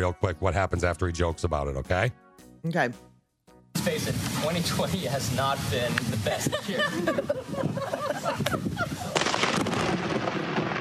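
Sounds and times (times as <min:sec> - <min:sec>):
speech: 0:00.0 - 0:03.1, 0:03.8 - 0:09.1
laughter: 0:06.1 - 0:09.2
nearby lightning strike thunderclap: 0:07.4 - 0:10.7.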